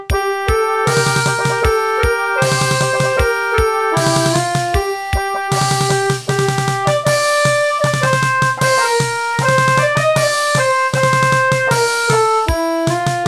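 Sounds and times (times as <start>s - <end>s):
national anthem: 0.2s - 13.1s.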